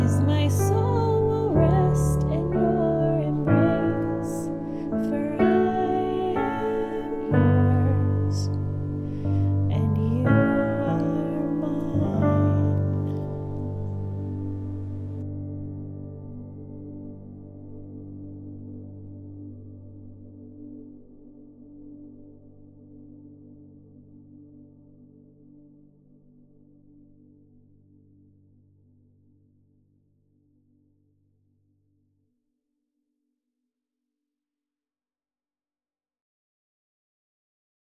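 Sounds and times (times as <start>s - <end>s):
piano karaoke accompaniment: 0.0s - 15.2s.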